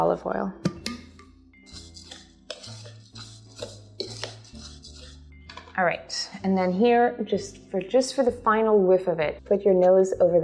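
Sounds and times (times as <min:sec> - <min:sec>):
speech: 0:00.0 - 0:00.7, 0:05.8 - 0:10.4
spoon clinking and scraping in a bowl of breadcrumbs, cheese, fennel and orange zest: 0:01.6 - 0:06.7.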